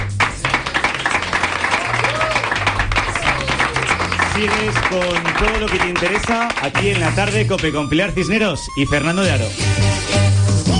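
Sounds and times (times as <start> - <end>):
applause: 0.0 - 7.9
speech: 4.4 - 10.0.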